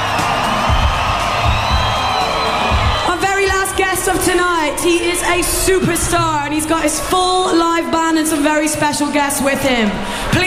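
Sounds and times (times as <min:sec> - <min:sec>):
crowd screaming and cheering: 0:00.0 - 0:07.6
speech: 0:04.7 - 0:10.4.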